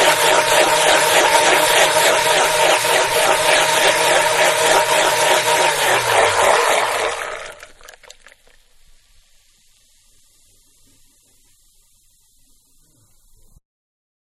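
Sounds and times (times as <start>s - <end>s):
household electric blender blending wet ingredients: 0.0s - 8.2s.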